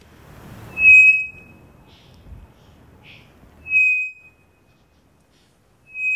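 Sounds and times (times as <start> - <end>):
three-wattled bellbird singing: 0.7 - 1.6, 3.6 - 4.4, 5.8 - 6.1.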